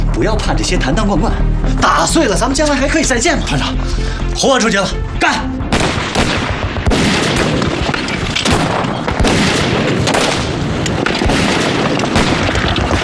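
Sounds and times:
speech: 0:00.2 - 0:05.6
bridge being blown up, explosion: 0:05.7 - 0:13.0.

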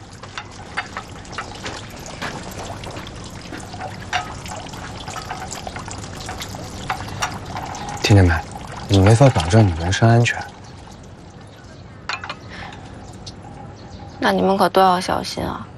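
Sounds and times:
running tap water splashing as fruit is washed: 0:00.0 - 0:11.8
light knocks and clatters: 0:00.0 - 0:14.2
speech: 0:08.1 - 0:10.5, 0:14.2 - 0:15.7.

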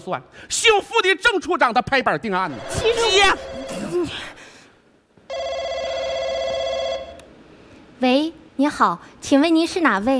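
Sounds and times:
speech: 0:00.0 - 0:04.4, 0:08.0 - 0:10.1
telephone ringing: 0:02.5 - 0:04.3, 0:05.3 - 0:07.2.

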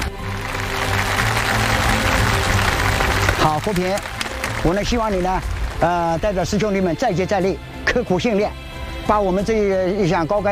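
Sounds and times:
audience applause: 0:00.0 - 0:06.5
speech: 0:03.6 - 0:10.5.

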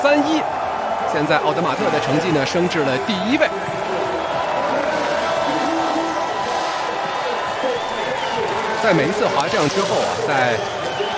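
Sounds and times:
speech: 0:00.0 - 0:03.8, 0:08.8 - 0:10.8
large crowd of spectators cheering at ski race: 0:00.0 - 0:11.1
faint whistle-like tones: 0:04.0 - 0:11.1.

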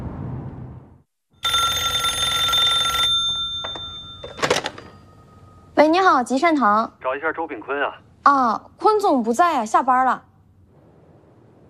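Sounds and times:
low rumble: 0:00.0 - 0:01.0
telephone bell ringing: 0:01.4 - 0:05.7
speech: 0:05.8 - 0:10.3.

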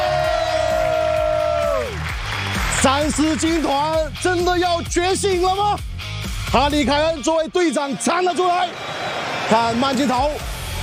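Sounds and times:
stadium crowd applauding England captain Harry Kane's goal: 0:00.0 - 0:04.1, 0:07.6 - 0:10.8
speech: 0:02.8 - 0:08.9, 0:09.5 - 0:10.8.

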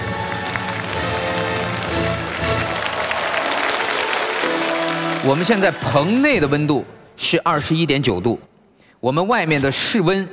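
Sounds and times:
audience applause: 0:00.0 - 0:06.7
speech: 0:05.2 - 0:10.3.

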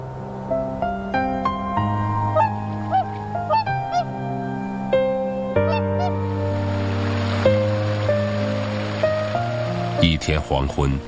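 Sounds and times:
whooper swans calling in flight: 0:00.6 - 0:10.1
speech: 0:10.3 - 0:11.0.

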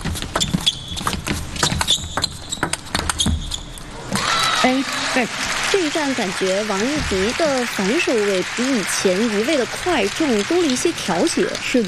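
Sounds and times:
table tennis ball bouncing on table and paddle in a women's match: 0:00.0 - 0:03.7
speech: 0:04.6 - 0:11.8.

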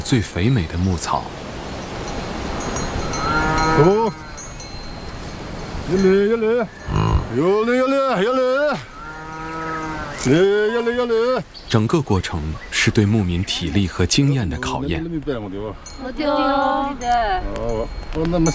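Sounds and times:
hiss: 0:00.0 - 0:18.5
speech: 0:00.1 - 0:01.5, 0:03.8 - 0:04.2, 0:05.9 - 0:08.9, 0:10.2 - 0:18.5
cattle herd lowing on a high-altitude pasture: 0:03.0 - 0:04.6, 0:05.8 - 0:11.4.

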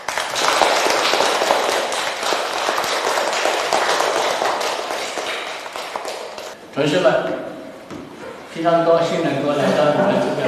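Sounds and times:
audience applause: 0:00.0 - 0:06.6
speech: 0:06.8 - 0:07.5, 0:08.6 - 0:10.4.

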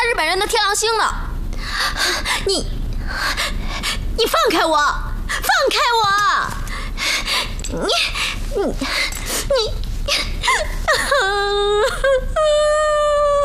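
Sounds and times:
speech: 0:00.4 - 0:03.6, 0:04.2 - 0:13.0
woman crying and whimpering: 0:07.2 - 0:13.4.

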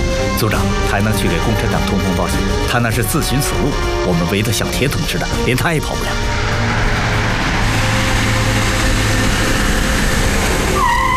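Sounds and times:
military vehicle: 0:00.0 - 0:11.1
speech: 0:00.4 - 0:06.8.

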